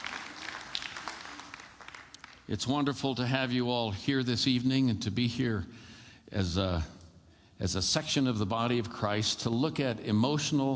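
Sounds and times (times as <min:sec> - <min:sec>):
audience applause: 0:00.0 - 0:02.4
speech: 0:02.5 - 0:07.0, 0:07.6 - 0:10.7.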